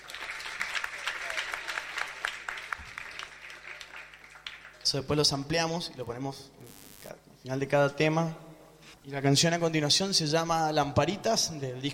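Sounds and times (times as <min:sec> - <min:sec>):
audience applause: 0:00.0 - 0:04.8
speech: 0:04.9 - 0:06.8, 0:07.4 - 0:08.4, 0:09.0 - 0:11.9.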